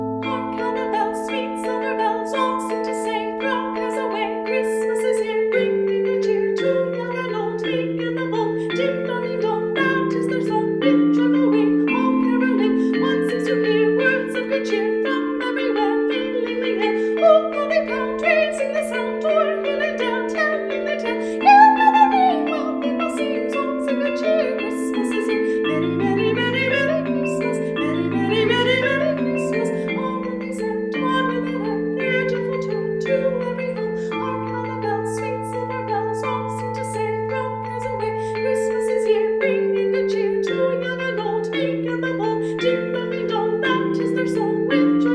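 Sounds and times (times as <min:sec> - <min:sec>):
soprano singing a carol: 0:00.1 - 0:45.1.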